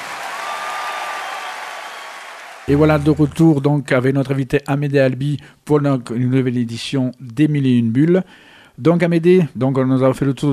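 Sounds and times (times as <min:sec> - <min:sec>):
audience applause: 0:00.0 - 0:02.8
speech: 0:02.7 - 0:10.5.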